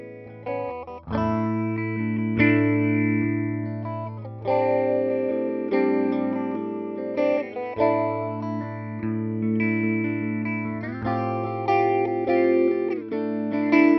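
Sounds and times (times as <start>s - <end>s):
electric guitar with four-stage phasing effect: 0.0s - 13.9s.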